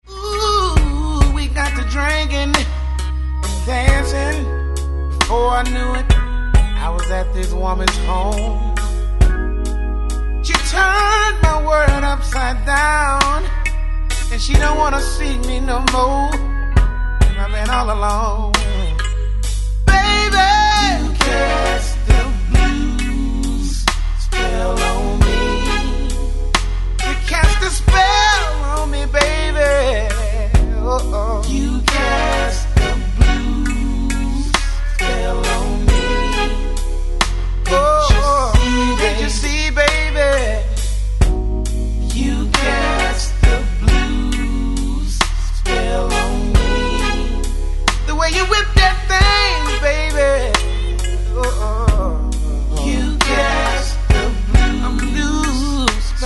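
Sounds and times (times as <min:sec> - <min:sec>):
blues music: 0:00.0 - 0:56.2.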